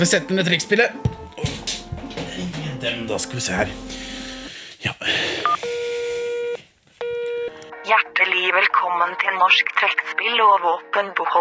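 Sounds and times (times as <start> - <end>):
speech: 0.0 - 1.8, 2.4 - 4.1, 7.9 - 11.3
faint hiss: 1.3 - 7.3
phone keypad DTMF tones: 5.4 - 7.7.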